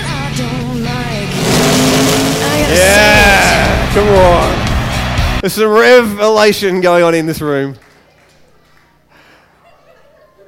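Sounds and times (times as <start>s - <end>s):
car engine idling and revving: 1.0s - 5.1s
speech: 4.0s - 4.6s, 5.4s - 7.8s
laughter: 9.4s - 10.4s.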